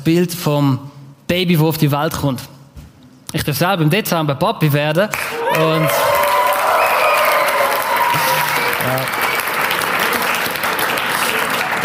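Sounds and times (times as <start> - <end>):
speech: 0.0 - 2.5, 3.3 - 6.1, 8.8 - 9.2
audience applause: 5.2 - 11.8.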